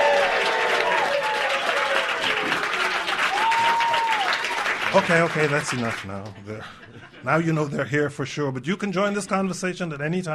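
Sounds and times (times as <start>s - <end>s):
audience whooping and shouting: 0.0s - 4.8s
studio audience applause: 0.0s - 6.4s
speech: 4.9s - 10.3s
laughter: 5.7s - 8.1s.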